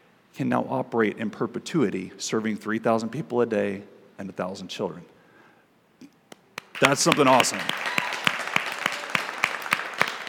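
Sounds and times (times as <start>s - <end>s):
speech: 0.4s - 5.1s, 6.8s - 7.8s
hand claps: 6.3s - 10.2s.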